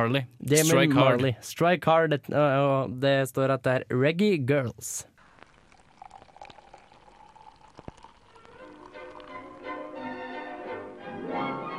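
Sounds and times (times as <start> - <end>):
speech: 0.0 - 5.1
beer pouring into a glass: 5.2 - 10.5.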